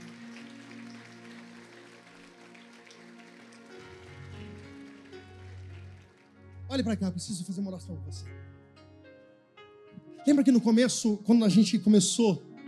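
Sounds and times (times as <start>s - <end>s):
audience applauding: 0.0s - 6.9s
speech: 6.7s - 8.6s, 10.3s - 12.5s.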